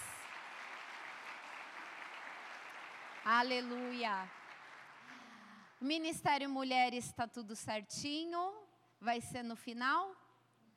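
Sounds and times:
audience applause: 0:00.0 - 0:05.6
speech: 0:03.2 - 0:04.4, 0:05.8 - 0:10.2.

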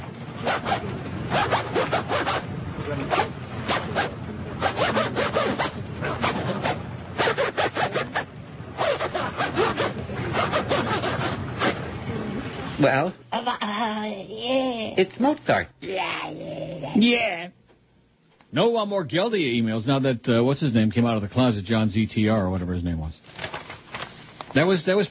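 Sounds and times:
zipper played like an instrument: 0:00.4 - 0:11.9
speech: 0:12.9 - 0:17.4, 0:18.5 - 0:23.5, 0:24.5 - 0:25.0.

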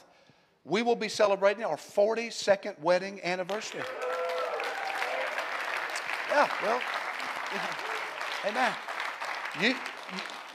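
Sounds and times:
speech: 0:00.7 - 0:04.2, 0:06.3 - 0:08.9, 0:09.5 - 0:10.4
audience clapping: 0:03.4 - 0:10.5.

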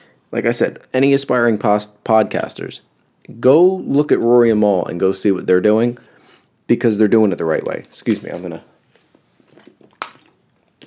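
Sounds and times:
speech: 0:00.3 - 0:06.1, 0:06.7 - 0:08.7
person sipping water: 0:09.4 - 0:10.8.

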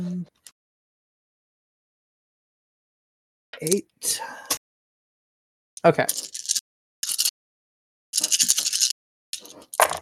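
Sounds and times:
speech: 0:03.6 - 0:04.6, 0:05.8 - 0:06.4
dice being rolled: 0:06.1 - 0:07.3, 0:08.2 - 0:09.9.

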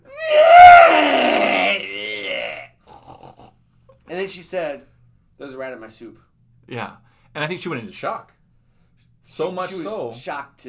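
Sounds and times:
person imitating a cry between a horse's neigh and a pig's squeal: 0:00.0 - 0:02.6
speech: 0:04.4 - 0:08.4, 0:09.2 - 0:10.6.

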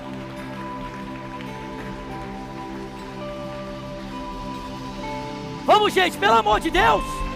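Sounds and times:
audience applauding: 0:00.0 - 0:04.2
speech: 0:05.8 - 0:07.2.

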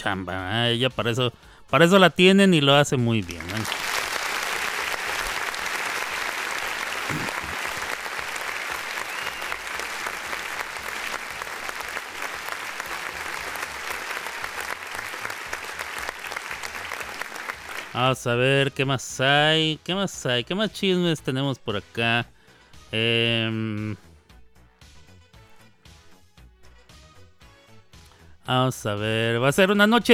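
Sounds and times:
speech: 0:00.0 - 0:03.9, 0:18.0 - 0:22.3, 0:22.9 - 0:24.0, 0:28.5 - 0:30.1
applause: 0:02.9 - 0:18.3.

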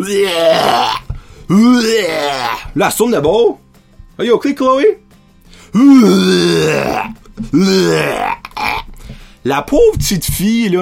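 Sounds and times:
girl vomiting into a toilet: 0:00.0 - 0:02.7, 0:05.8 - 0:08.9
speech: 0:00.0 - 0:03.6, 0:04.2 - 0:05.0, 0:05.7 - 0:08.8, 0:09.4 - 0:10.7.

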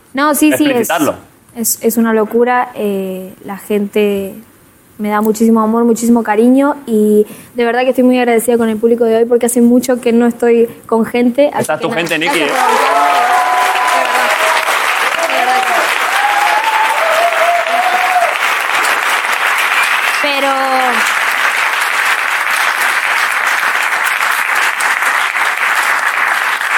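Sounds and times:
speech: 0:00.1 - 0:13.1
audience applause: 0:11.9 - 0:26.7
voices whooping and calling out: 0:12.4 - 0:18.5.

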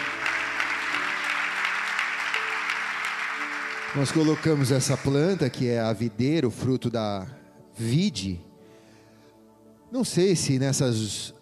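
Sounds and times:
audience applauding loudly: 0:00.0 - 0:05.8
speech: 0:03.9 - 0:08.5, 0:09.9 - 0:11.4.

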